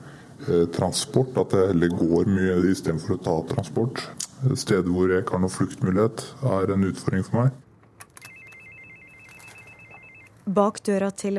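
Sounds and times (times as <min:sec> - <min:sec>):
low hum: 0:00.0 - 0:11.3
speech: 0:00.4 - 0:07.6, 0:10.5 - 0:11.3
telephone ringing with a high-pitched electronic trill: 0:08.2 - 0:10.5.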